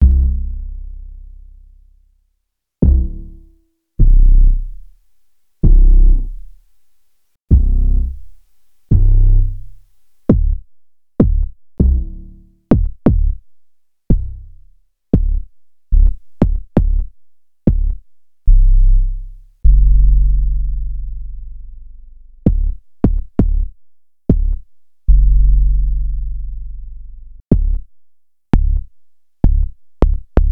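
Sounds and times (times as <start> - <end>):
bass: 0.0 - 6.8, 7.5 - 30.5.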